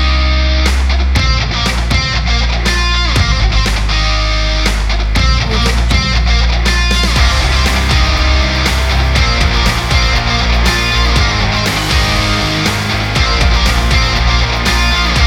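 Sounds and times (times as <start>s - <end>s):
upbeat action sport rock music: 0.0s - 15.2s.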